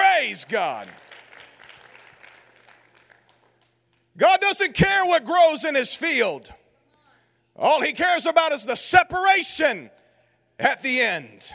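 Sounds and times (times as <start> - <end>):
audience clapping hands: 0.0 - 4.0
speech: 0.3 - 1.1, 4.2 - 6.6, 7.6 - 10.0, 10.6 - 11.5.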